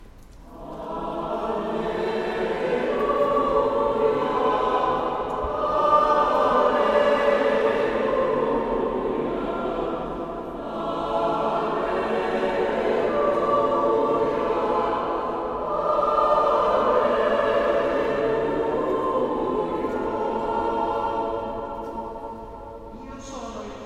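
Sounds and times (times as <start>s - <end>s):
alleluia chant: 0.0s - 23.8s.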